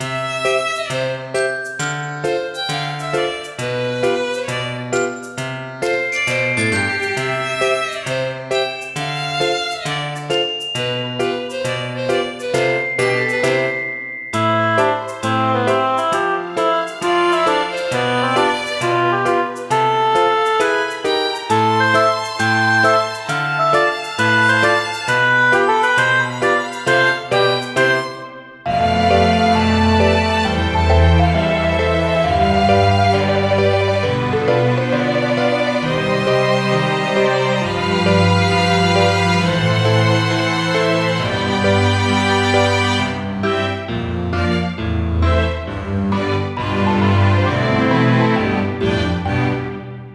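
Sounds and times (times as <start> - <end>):
background music: 0.0 - 50.1.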